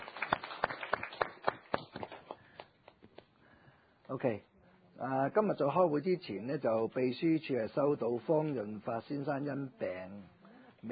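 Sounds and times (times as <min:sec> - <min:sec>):
meeting attendees applauding: 0:00.0 - 0:03.3
speech: 0:04.1 - 0:10.9.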